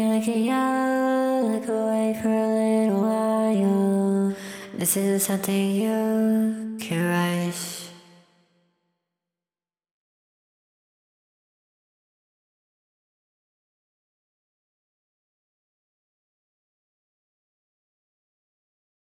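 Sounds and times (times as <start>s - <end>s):
vocals: 0.0s - 8.5s.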